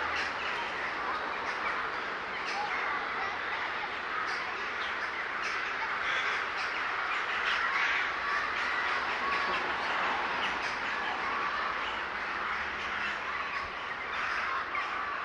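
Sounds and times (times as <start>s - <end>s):
large flock of birds calling in a city park in Łódź, Poland: 0.0s - 15.2s.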